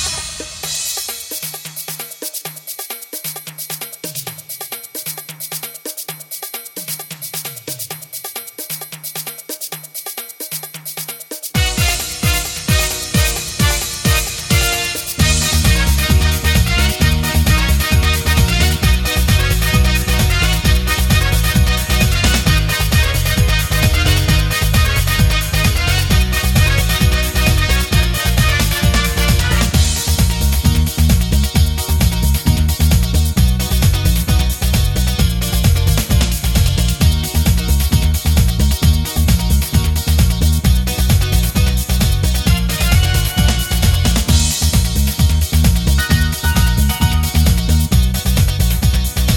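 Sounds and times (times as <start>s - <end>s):
lofi backing track: 11.6s - 49.3s.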